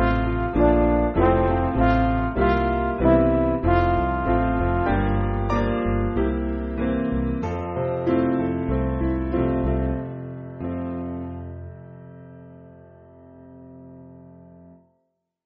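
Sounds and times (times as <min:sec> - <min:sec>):
MIDI church backing music: 0:00.0 - 0:10.2.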